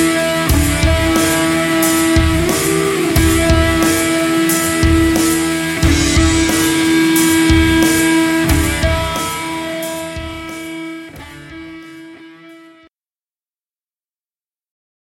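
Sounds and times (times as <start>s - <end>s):
harmonic synth: 0.0s - 11.2s.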